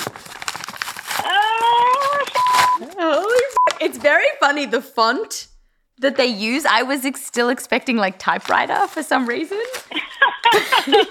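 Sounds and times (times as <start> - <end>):
manila folder paper crinkling and rustling: 0.0 - 4.2, 8.2 - 10.5
speech: 3.9 - 11.0
laughter: 9.9 - 11.0.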